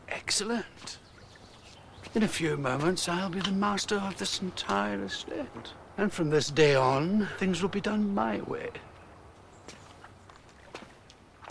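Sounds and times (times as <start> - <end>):
constant hiss: 0.0 - 11.4
speech: 0.3 - 1.0, 2.1 - 8.9
footsteps of two men walking away: 0.8 - 4.9, 9.4 - 11.4.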